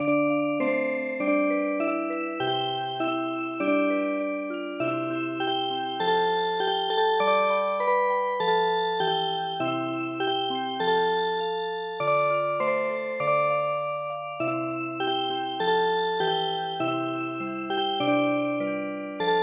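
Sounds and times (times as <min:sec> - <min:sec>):
music box: 0:00.0 - 0:19.4.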